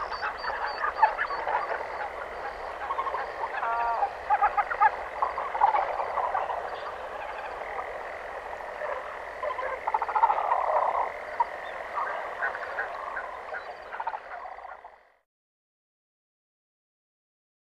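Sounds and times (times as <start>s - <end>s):
ducks on a pond: 0.0s - 15.2s
forest ambience: 0.0s - 15.2s.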